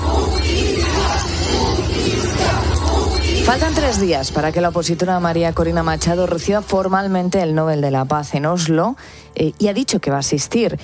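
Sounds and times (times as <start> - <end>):
crowd of protesters chanting in the street: 0.0 - 4.6
speech: 3.5 - 10.8.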